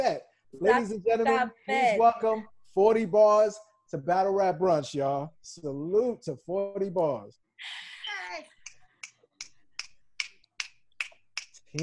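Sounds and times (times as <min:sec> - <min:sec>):
speech: 0:00.0 - 0:08.5
finger snapping: 0:08.7 - 0:11.8.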